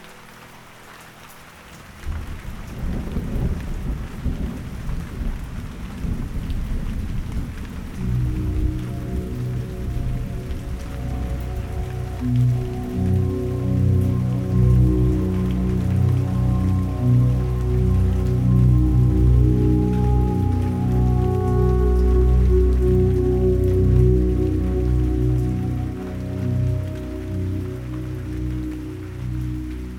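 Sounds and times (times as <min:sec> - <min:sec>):
heavy rain over hills near a tea house: 0:00.0 - 0:29.9
rolling thunder over hills: 0:02.1 - 0:12.8
sustained low tonal drone: 0:07.9 - 0:29.9.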